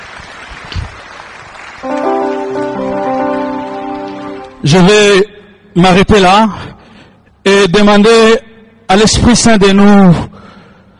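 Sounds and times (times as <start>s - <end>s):
audience applauding: 0.0s - 4.9s
speech: 4.6s - 6.8s, 7.5s - 10.3s.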